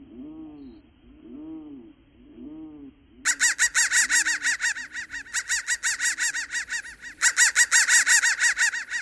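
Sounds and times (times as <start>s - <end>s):
digitally processed crow calls in buzzy repeating pulses: 3.3s - 8.9s.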